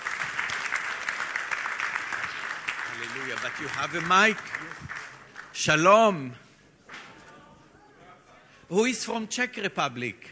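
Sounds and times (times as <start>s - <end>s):
church service audience applauding visiting guests: 0.0s - 5.6s
speech: 3.0s - 5.0s, 5.6s - 6.4s, 8.7s - 10.2s.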